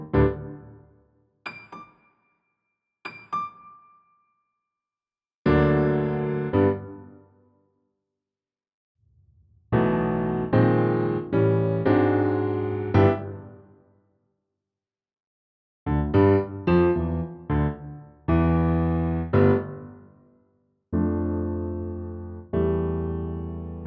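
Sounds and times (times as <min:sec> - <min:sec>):
piano: 0:00.0 - 0:02.1, 0:03.1 - 0:04.0, 0:05.5 - 0:07.4, 0:09.7 - 0:13.8, 0:15.9 - 0:20.2, 0:20.9 - 0:23.8.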